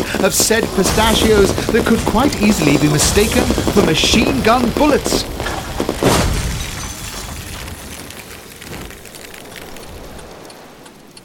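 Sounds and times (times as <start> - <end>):
speech: 0.2 - 6.0
car crashing off Pacific Coast Highway and rolling over onto the beach: 5.4 - 9.0.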